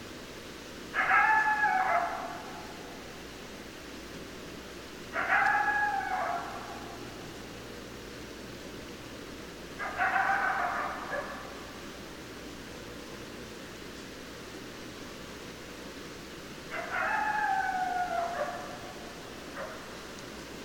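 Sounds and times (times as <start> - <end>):
faint hiss: 0.0 - 20.6
coyotes howling: 0.9 - 3.1, 5.1 - 7.3, 9.8 - 11.8, 16.7 - 20.2.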